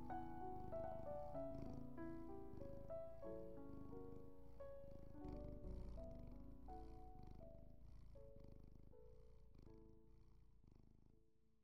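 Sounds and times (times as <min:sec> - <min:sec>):
calm music with sustained tones: 0:00.0 - 0:07.6
domestic cat purring: 0:00.0 - 0:11.6.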